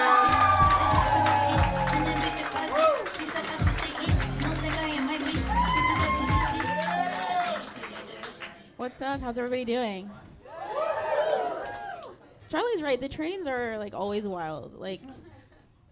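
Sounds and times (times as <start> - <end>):
crowd cheering, whooping and clapping: 0.0 - 8.6, 10.5 - 12.2
thumping low beat: 0.6 - 2.2
speech: 9.0 - 10.3, 12.5 - 15.2.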